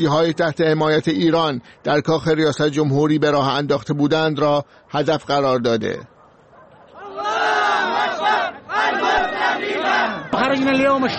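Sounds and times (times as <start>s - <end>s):
speech: 0.0s - 6.1s, 10.4s - 11.1s
protest crowd chanting: 6.9s - 11.1s.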